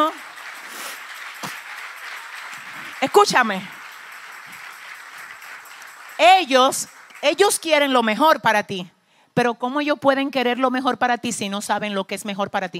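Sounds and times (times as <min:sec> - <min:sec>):
audience applause: 0:00.0 - 0:08.0
speech: 0:03.0 - 0:03.8, 0:06.2 - 0:12.7.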